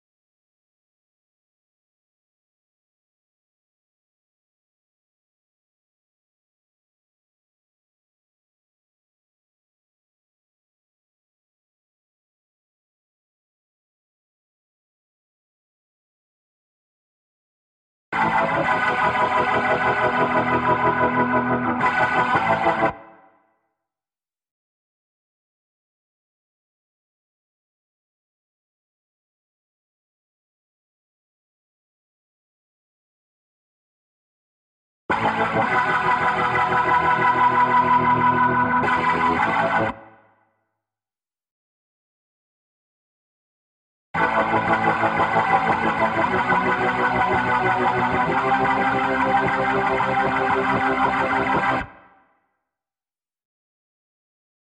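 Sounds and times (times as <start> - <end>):
guitar: 18.2 - 23.3, 35.1 - 40.2, 44.2 - 52.1.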